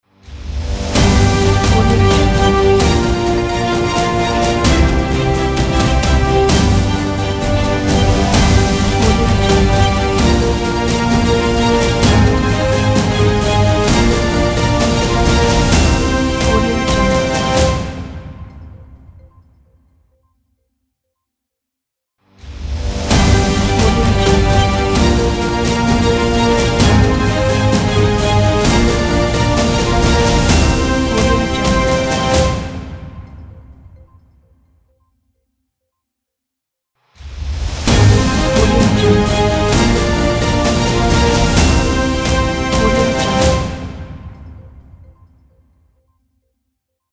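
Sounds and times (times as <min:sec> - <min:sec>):
TV news show opener ident: 0:00.3 - 0:18.5, 0:22.5 - 0:33.3, 0:37.2 - 0:44.6.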